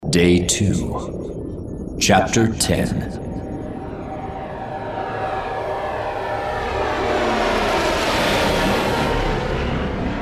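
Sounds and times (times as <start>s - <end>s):
speech: 0.1s - 1.3s, 2.0s - 3.2s
Imperial bent-wing interceptor fighter engines humming overhead: 3.0s - 10.2s.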